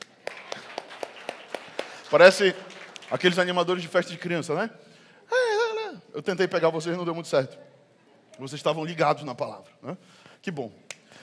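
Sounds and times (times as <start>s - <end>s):
audience clapping in rhythm: 0.0s - 4.2s
speech: 2.1s - 4.9s, 6.1s - 7.7s, 8.4s - 10.8s.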